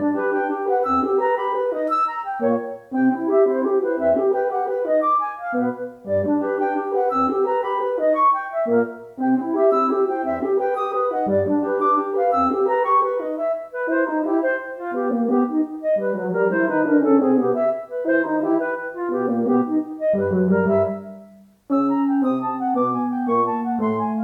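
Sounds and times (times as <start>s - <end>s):
wind instruments without oboe: 0.0s - 24.2s.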